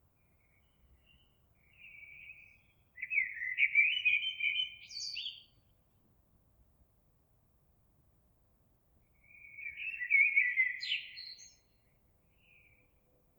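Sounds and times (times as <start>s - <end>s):
Eurasian blackbird singing: 0.4s - 5.6s, 9.2s - 12.8s.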